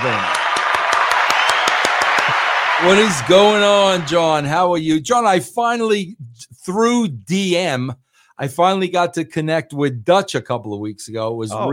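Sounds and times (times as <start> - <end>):
speech: 0.0 - 0.4, 2.8 - 11.7
applause: 0.0 - 4.5.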